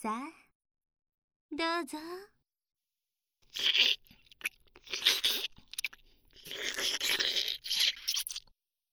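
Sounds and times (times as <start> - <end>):
speech: 0.0 - 0.4, 1.5 - 2.3, 3.5 - 5.1
hungry female eagerly crunching a much-loved treat: 3.5 - 8.5.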